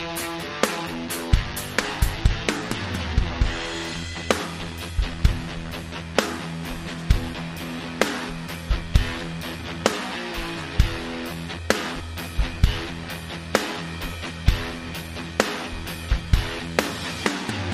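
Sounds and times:
drums: 0.0s - 17.7s
smoky guitar: 0.0s - 17.7s.

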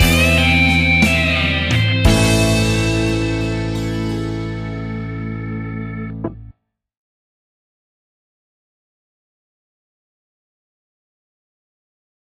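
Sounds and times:
blues stinger: 0.0s - 6.5s.

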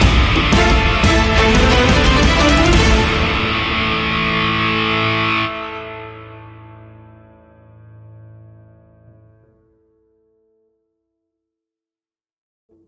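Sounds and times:
gothic impact stinger: 0.0s - 7.0s.

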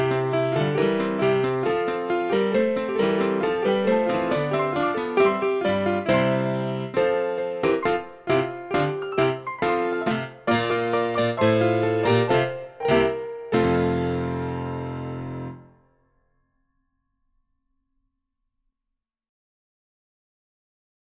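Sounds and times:
classical piano: 0.0s - 15.8s.

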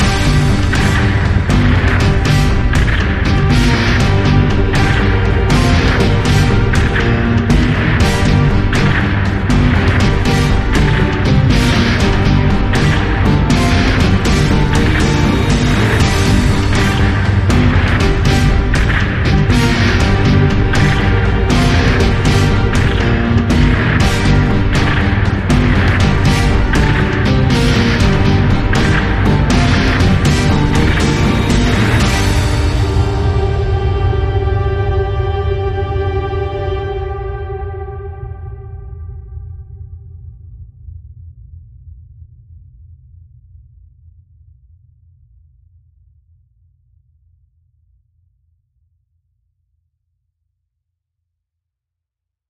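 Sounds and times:
gothic action music: 0.0s - 39.8s.

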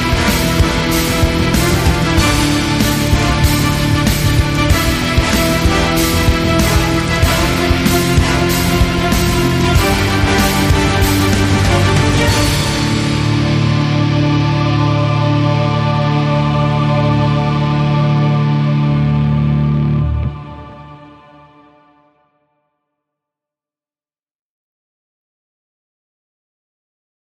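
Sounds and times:
epic orchestral action music: 0.0s - 21.8s.

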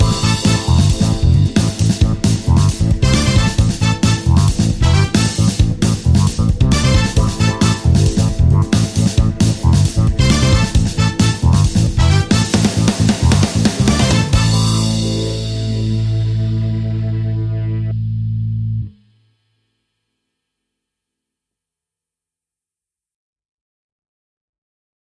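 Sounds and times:
funky soul music: 0.0s - 18.9s.

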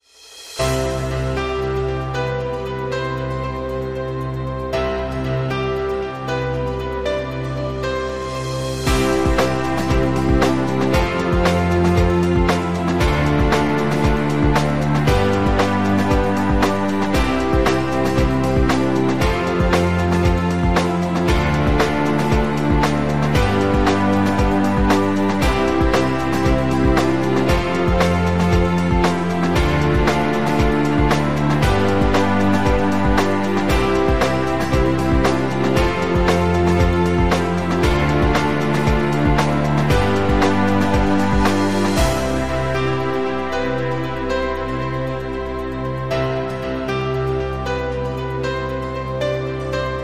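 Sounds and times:
corporate background music: 0.3s - 50.0s.

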